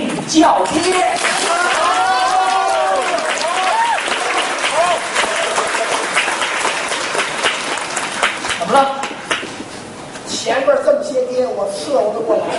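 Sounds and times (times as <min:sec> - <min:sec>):
speech: 0:00.3 - 0:01.8, 0:08.7 - 0:09.0, 0:10.5 - 0:12.5
audience applause: 0:00.8 - 0:09.5
cheers and voices calling out: 0:00.9 - 0:06.2.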